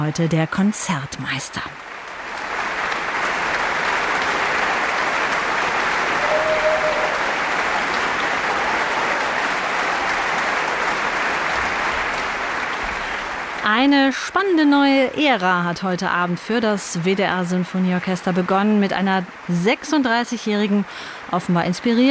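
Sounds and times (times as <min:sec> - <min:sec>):
speech: 0:00.0 - 0:01.9, 0:13.7 - 0:22.0
large concert audience applauding orchestra: 0:01.8 - 0:14.1.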